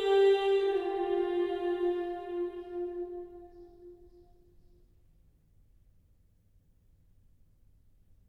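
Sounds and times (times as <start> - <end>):
gregorian chant: 0.0 - 4.4.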